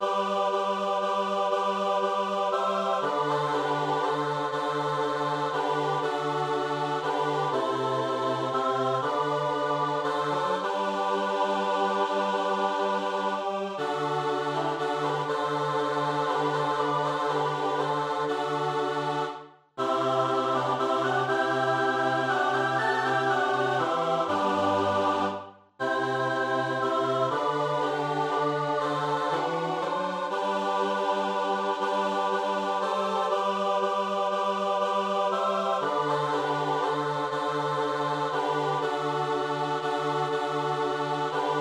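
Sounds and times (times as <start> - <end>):
Athonite chant in G major: 0.0 - 41.5.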